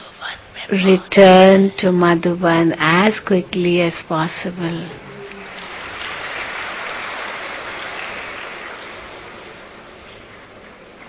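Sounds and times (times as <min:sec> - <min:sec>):
speech: 0:00.7 - 0:05.1
audience clapping: 0:05.0 - 0:11.0.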